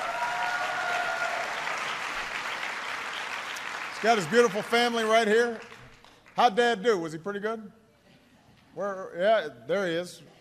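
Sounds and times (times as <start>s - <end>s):
audience applause: 0.0s - 6.4s
speech: 4.0s - 5.7s, 6.4s - 7.8s, 8.8s - 10.4s.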